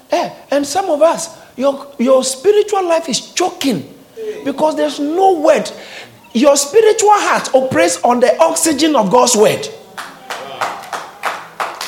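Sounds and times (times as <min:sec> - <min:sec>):
speech: 0:00.2 - 0:09.8
audience clapping in rhythm: 0:09.9 - 0:11.8.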